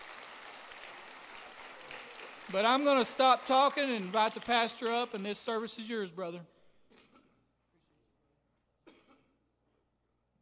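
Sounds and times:
audience hand clapping: 0.0 - 6.1
speech: 2.5 - 6.6.

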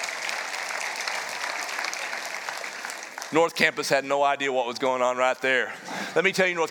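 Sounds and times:
church congregation clapping: 0.0 - 5.4
speech: 3.3 - 6.6.

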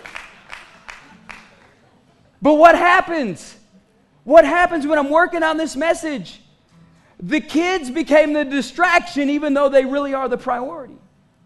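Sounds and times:
audience clapping: 0.0 - 1.8
speech: 2.4 - 3.6, 4.2 - 6.4, 7.2 - 11.0.

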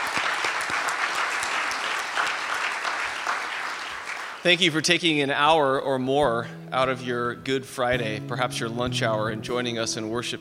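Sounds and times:
audience applause: 0.0 - 4.8
speech: 4.4 - 10.4.

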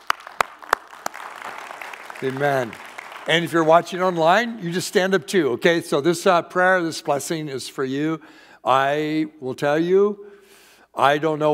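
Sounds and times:
raucous applause: 0.0 - 3.9
speech: 2.2 - 10.3, 11.0 - 11.5.

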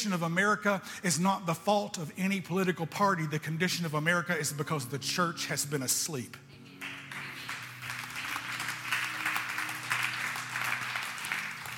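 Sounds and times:
speech: 0.0 - 6.5
tepid audience applause: 6.8 - 11.7.

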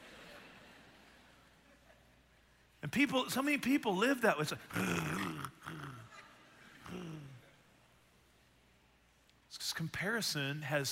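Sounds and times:
speech: 2.8 - 5.2, 10.0 - 10.9
voice imitating a dog growling over its food bowl: 4.7 - 6.1, 6.8 - 7.4.

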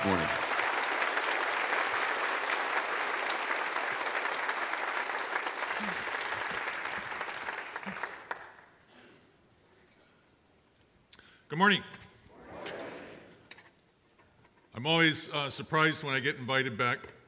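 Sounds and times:
speech: 0.0 - 0.4, 11.6 - 11.9, 14.8 - 17.2
church congregation applauding to welcome a guest speaker: 0.0 - 8.8.

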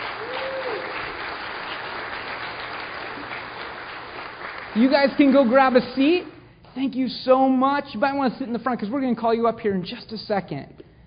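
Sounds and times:
audience round of applause: 0.0 - 5.7
speech: 4.8 - 10.8.

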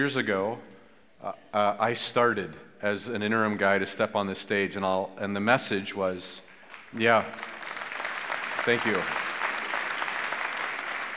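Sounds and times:
speech: 0.0 - 7.6, 8.7 - 9.2
audience applause: 6.6 - 11.1.

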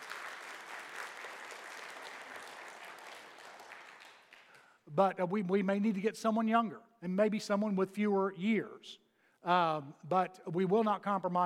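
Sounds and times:
audience applause: 0.0 - 4.7
speech: 4.9 - 11.4.

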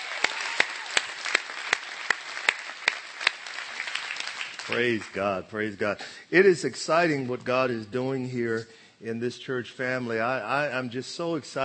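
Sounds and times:
audience applause: 0.0 - 5.2
rhythmic synchronized claps: 0.0 - 5.2
speech: 4.7 - 11.6.

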